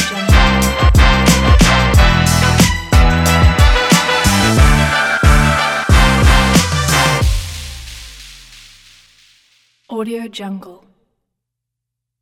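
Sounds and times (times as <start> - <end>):
hip hop music: 0.0 - 9.3.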